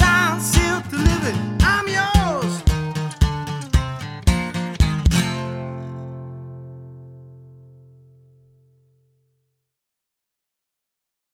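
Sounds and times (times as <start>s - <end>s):
person singing: 0.0s - 3.0s
solo acoustic guitar: 0.0s - 9.3s.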